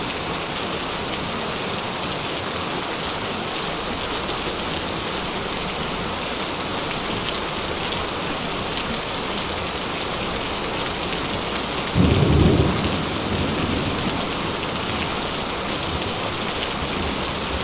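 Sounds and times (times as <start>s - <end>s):
gentle rain: 0.0s - 17.6s.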